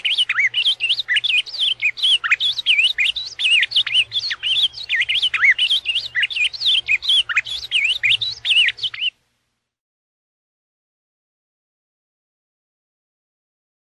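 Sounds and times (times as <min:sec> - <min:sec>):
ultramarine grosbeak whistled warbling song: 0:00.0 - 0:09.1.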